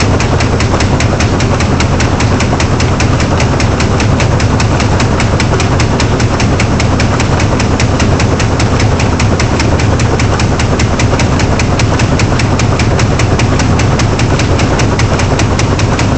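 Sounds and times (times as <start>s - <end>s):
industrial ambience: 0.0s - 16.1s.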